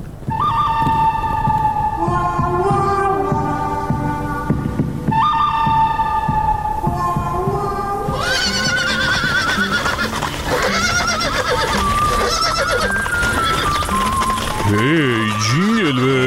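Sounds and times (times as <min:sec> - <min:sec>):
horse neighing as cowboys ride up: 0:00.0 - 0:01.7, 0:08.1 - 0:16.2
dense busy bed of music-like sound: 0:00.0 - 0:16.2.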